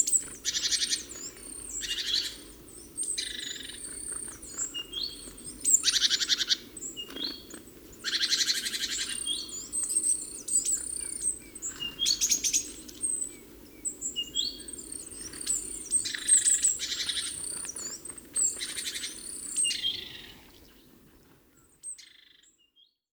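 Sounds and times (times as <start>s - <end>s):
great tit calls: 0.0s - 22.3s.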